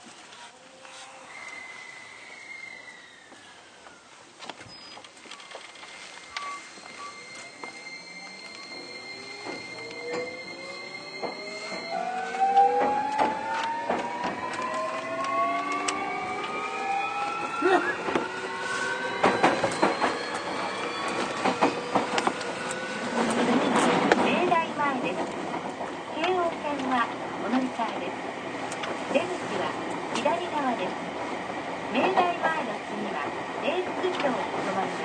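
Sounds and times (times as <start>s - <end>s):
Keio 1000 series train motor whine: 5.3s - 24.2s
Keio 1000 series train rumble: 5.3s - 35.0s.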